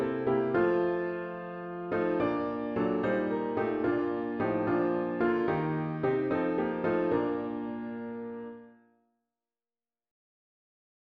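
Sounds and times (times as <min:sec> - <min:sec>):
hymn on piano with intro: 0:00.0 - 0:08.6.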